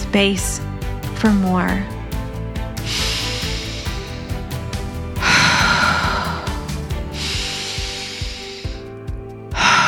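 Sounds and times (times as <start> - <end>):
speech: 0.2 - 2.0
deep breathing in and out during a breathwork session: 2.4 - 9.8.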